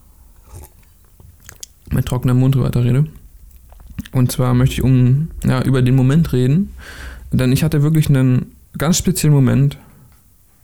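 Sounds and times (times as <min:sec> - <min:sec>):
person sipping water: 0:00.0 - 0:01.9, 0:03.2 - 0:04.2
speech: 0:01.9 - 0:03.2, 0:04.1 - 0:09.9.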